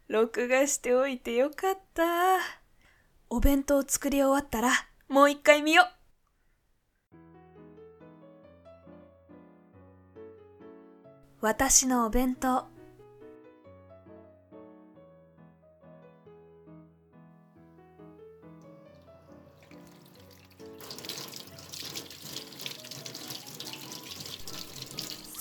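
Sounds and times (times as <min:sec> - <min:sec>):
speech: 0:00.1 - 0:02.6, 0:03.3 - 0:06.0, 0:11.4 - 0:12.7
gentle melodic music: 0:07.2 - 0:25.3
tap water running for washing hands: 0:18.6 - 0:25.3.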